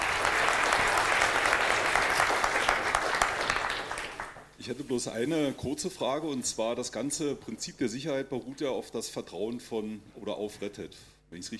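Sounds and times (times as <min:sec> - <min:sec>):
audience applause: 0:00.0 - 0:04.5
speech: 0:04.7 - 0:11.5.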